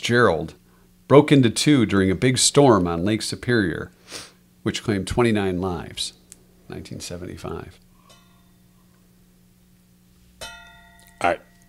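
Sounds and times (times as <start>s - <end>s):
speech: 0.0s - 7.8s, 11.2s - 11.5s
bell ringing: 10.4s - 11.6s.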